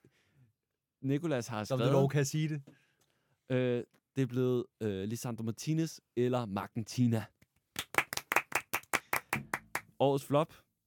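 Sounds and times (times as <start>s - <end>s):
speech: 1.0s - 2.8s, 3.5s - 7.4s, 10.0s - 10.7s
crowd slow clapping: 7.8s - 10.0s.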